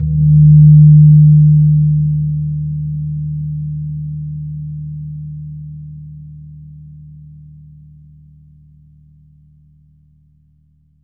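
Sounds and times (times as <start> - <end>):
gong: 0.0 - 8.2.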